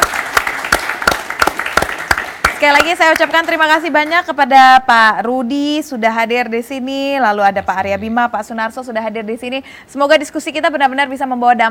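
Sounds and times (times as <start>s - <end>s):
audience applauding the speakers: 0.0s - 3.6s
speech: 2.6s - 11.6s.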